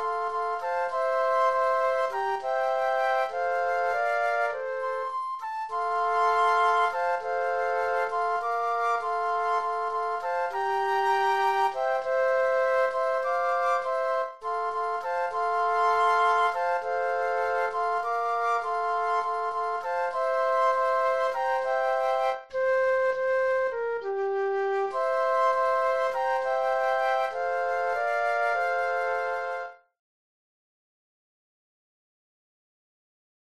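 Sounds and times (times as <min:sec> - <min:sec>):
flute trio playing: 0:00.0 - 0:29.8.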